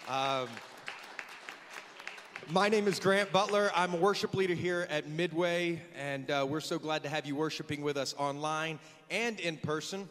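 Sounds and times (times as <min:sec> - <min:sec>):
audience's scattered sparse applause: 0:00.0 - 0:03.8
speech: 0:00.1 - 0:00.8, 0:02.4 - 0:10.0.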